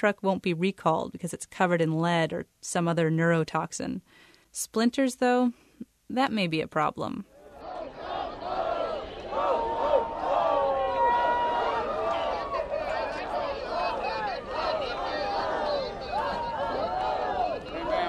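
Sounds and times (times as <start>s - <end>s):
speech: 0.0s - 7.3s
crowd of people in Santa costumes shouting ho-ho-ho: 7.3s - 18.0s.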